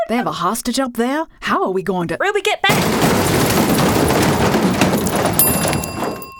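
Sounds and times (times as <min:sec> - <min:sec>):
speech: 0:00.1 - 0:03.7
elevator crashing down: 0:02.7 - 0:06.3
ringing metallic tones: 0:04.1 - 0:06.3.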